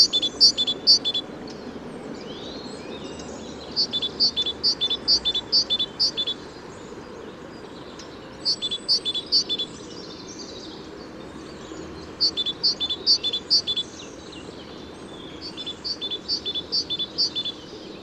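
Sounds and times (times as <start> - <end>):
great tit calling: 0.0 - 1.3, 2.4 - 6.5, 8.3 - 10.7, 11.8 - 14.5, 15.2 - 17.8.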